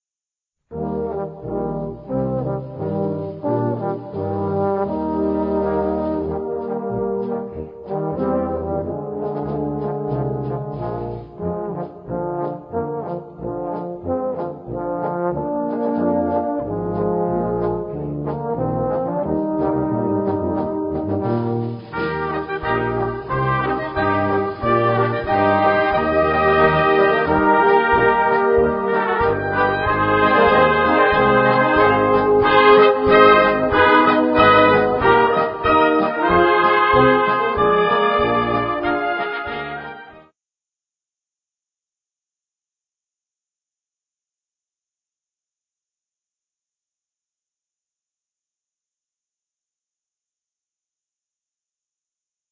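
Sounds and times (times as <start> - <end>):
polka music: 0.7 - 40.2.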